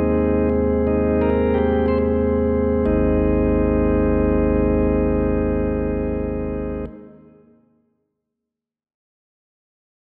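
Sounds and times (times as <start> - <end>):
vintage organs playing: 0.0 - 7.5.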